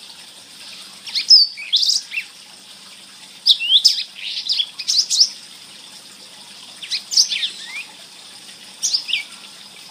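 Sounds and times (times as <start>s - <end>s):
blackthroat bird singing: 0.7s - 2.3s, 3.4s - 5.4s, 6.8s - 8.0s, 8.8s - 9.5s.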